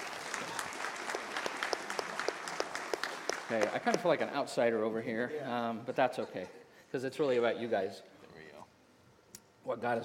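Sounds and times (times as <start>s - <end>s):
audience round of applause: 0.0s - 4.3s
speech: 3.5s - 8.1s, 9.6s - 10.0s.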